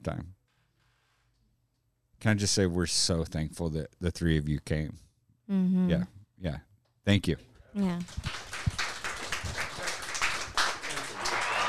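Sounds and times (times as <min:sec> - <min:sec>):
speech: 0:00.0 - 0:00.4, 0:02.2 - 0:08.4
applause sound effect played by button: 0:08.0 - 0:11.6.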